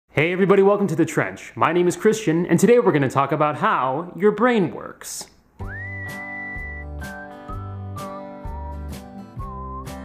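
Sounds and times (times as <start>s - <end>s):
speech: 0.2s - 6.2s
whistled ice cream truck tune: 5.6s - 10.0s.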